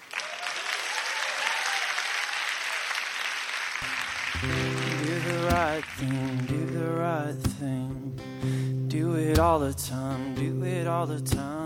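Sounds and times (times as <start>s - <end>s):
audience clapping welcoming a band: 0.0s - 7.2s
speech: 5.6s - 11.6s.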